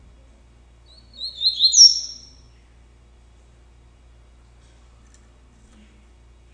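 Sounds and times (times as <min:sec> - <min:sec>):
double-collared seedeater song phrase: 0:01.0 - 0:02.3.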